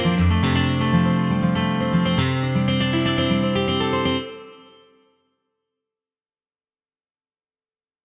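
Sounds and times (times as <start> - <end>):
southern rock guitar: 0.0 - 4.2.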